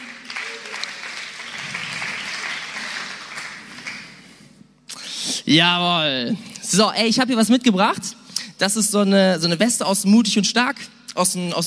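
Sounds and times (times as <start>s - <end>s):
audience applause: 0.0s - 4.3s
speech: 5.5s - 11.6s.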